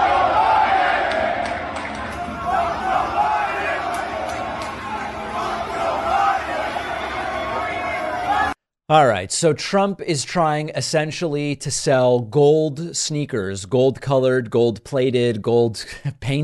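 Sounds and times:
large crowd chanting in unison: 0.0s - 8.6s
speech: 8.9s - 16.4s.

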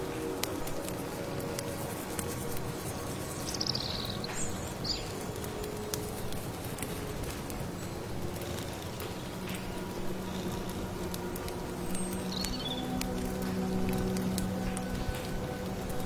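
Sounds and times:
firewood crackling: 0.0s - 16.0s
rustling rain patter: 0.0s - 16.0s
birds chirping: 3.0s - 5.2s, 11.9s - 13.2s.

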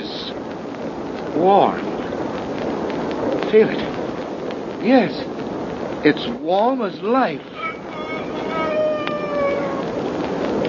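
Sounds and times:
steady hissing background: 0.0s - 10.6s
speech: 1.4s - 1.9s, 3.5s - 3.9s, 4.8s - 5.3s, 6.0s - 7.6s
rooster crowing: 7.6s - 10.1s.

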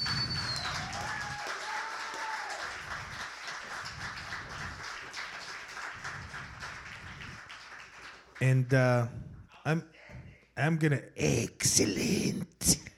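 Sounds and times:
whistles: 0.0s - 2.3s
audience applause: 0.0s - 8.4s
speech: 8.4s - 10.0s, 10.6s - 12.8s.

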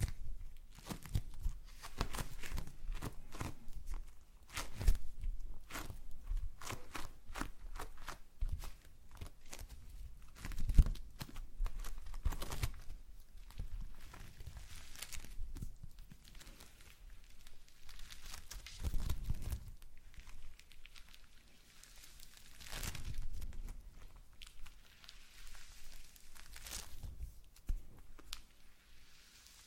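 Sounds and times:
slime squished and pulled squelching: 0.0s - 27.0s.

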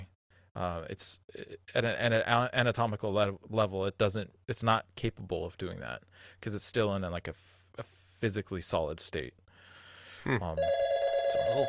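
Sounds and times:
speech: 0.6s - 9.4s, 10.2s - 11.6s
telephone ringing for incoming call: 10.6s - 11.6s.

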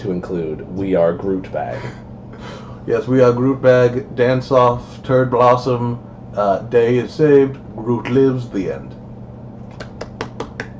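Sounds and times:
speech: 0.0s - 9.0s
steady low hum: 0.0s - 10.7s
finger snapping as applause: 9.7s - 10.7s.

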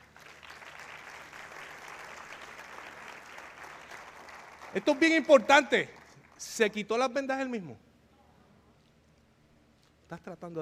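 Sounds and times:
audience applause: 0.0s - 6.1s
speech: 4.7s - 7.8s, 10.1s - 10.6s.

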